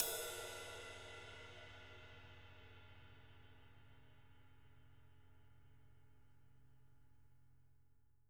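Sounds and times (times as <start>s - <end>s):
ride cymbal: 0.0s - 4.3s.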